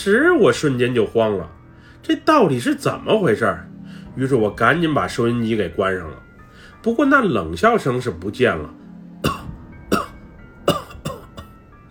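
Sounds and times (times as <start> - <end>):
speech: 0.0 - 6.2, 6.8 - 9.4
old man coughing inside a car: 9.2 - 11.6.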